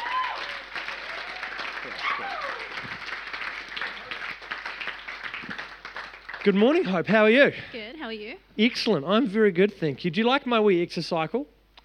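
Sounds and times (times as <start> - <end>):
audience applauding at a morning health and fitness event: 0.0 - 7.3
speech: 6.4 - 11.6.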